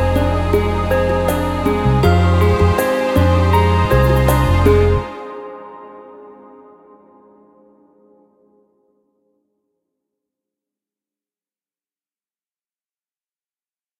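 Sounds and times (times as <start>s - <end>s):
dungeon background music: 0.0s - 7.5s.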